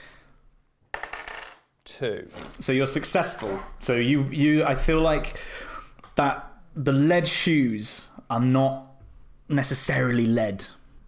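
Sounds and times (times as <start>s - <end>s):
dice clattering across a hard surface: 0.9s - 1.7s
speech: 2.0s - 8.9s, 9.5s - 10.8s.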